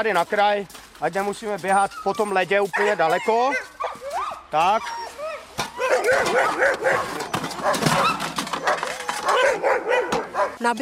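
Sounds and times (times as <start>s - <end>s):
speech: 0.0s - 3.7s, 4.5s - 5.0s, 6.1s - 8.3s, 9.5s - 10.7s
sled dogs barking and whining before feeding: 1.6s - 10.6s.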